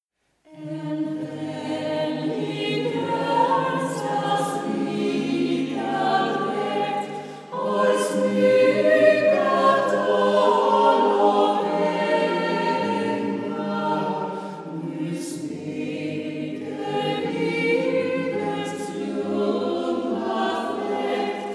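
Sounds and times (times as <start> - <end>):
summer hymn outtake: 0.5 - 21.5.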